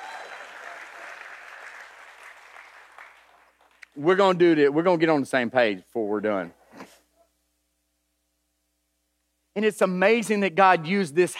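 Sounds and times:
audience clapping: 0.0s - 4.0s
speech: 4.0s - 6.6s, 9.6s - 11.3s.

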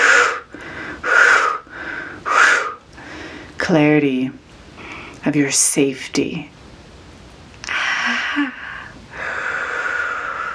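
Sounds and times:
deep slow breathing during a guided meditation: 0.0s - 3.6s, 7.6s - 10.5s
speech: 3.7s - 4.4s, 5.2s - 6.6s.

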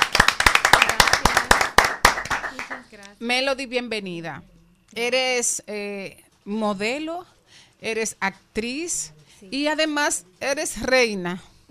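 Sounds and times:
audience applause welcoming a guest: 0.0s - 2.8s
speech: 3.0s - 11.6s.

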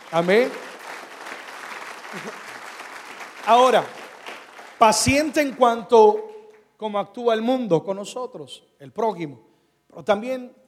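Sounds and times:
audience applause: 0.0s - 5.9s
speech: 0.1s - 0.6s, 2.1s - 2.5s, 3.4s - 4.0s, 4.8s - 10.6s.

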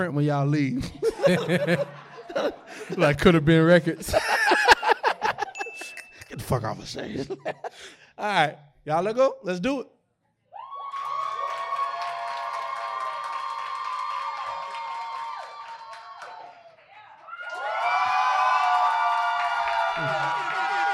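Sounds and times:
speech: 0.0s - 4.7s, 6.4s - 10.0s
laughter: 0.7s - 8.0s
live audience cheering and whooping: 10.5s - 20.9s.

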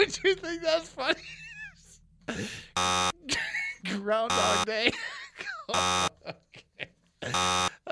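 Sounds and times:
speech: 0.2s - 1.3s
buzzer buzzing: 2.8s - 3.3s, 4.3s - 4.7s, 5.8s - 6.2s, 7.2s - 7.8s.

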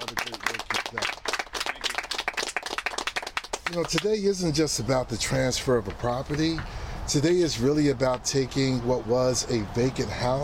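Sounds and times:
round of applause: 0.0s - 4.1s
speech: 3.7s - 10.4s.

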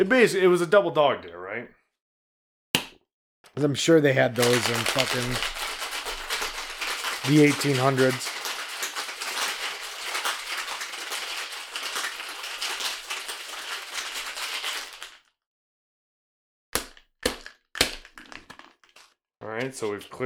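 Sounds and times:
speech: 0.0s - 1.8s, 3.6s - 5.6s, 7.2s - 8.3s, 19.6s - 20.2s
shaking a cocktail shaker with ice: 4.4s - 15.2s.

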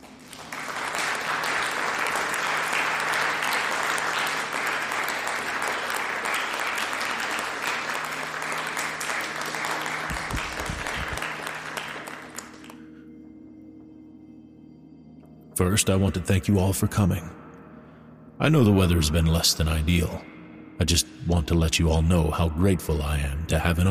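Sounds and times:
crowd applauding: 0.0s - 12.9s
speech: 15.6s - 17.4s, 18.4s - 23.8s.

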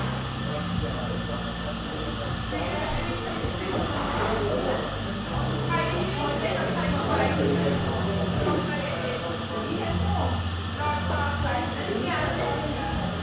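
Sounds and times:
lively overlapping chatter in a coffee shop: 0.0s - 13.2s
bright clink of cups: 3.2s - 4.6s.

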